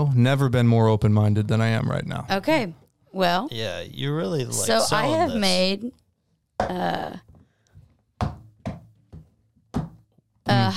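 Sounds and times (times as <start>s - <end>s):
speech: 0.2s - 6.0s, 6.6s - 7.3s
knocks and taps on an airtight container of jalapeño poppers: 8.2s - 10.1s.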